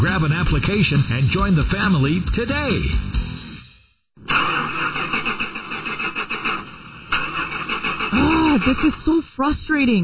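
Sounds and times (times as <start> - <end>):
speech: 0.0 - 3.2, 8.2 - 10.0
car engine cranking but failing to start: 4.2 - 9.4.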